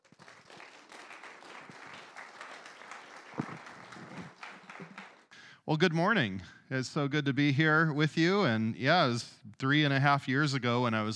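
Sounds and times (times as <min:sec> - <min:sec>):
church congregation applauding to welcome a speaker: 0:00.0 - 0:05.5
speech: 0:05.7 - 0:11.1.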